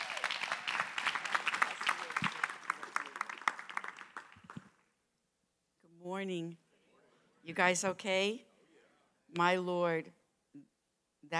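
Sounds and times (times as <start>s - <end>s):
audience applause at a staff gathering: 0.0s - 4.8s
speech: 6.1s - 6.6s, 7.4s - 8.5s, 9.3s - 10.2s.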